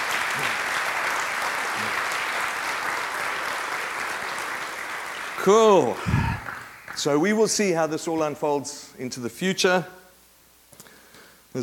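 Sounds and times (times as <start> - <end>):
audience applause: 0.0 - 7.2
speech: 5.4 - 6.2, 7.0 - 10.0.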